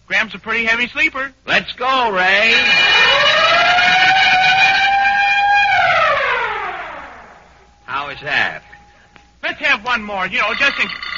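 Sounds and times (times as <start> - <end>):
speech: 0.2 - 3.0, 8.1 - 8.7, 9.4 - 11.0
loud siren wailing: 2.4 - 9.2.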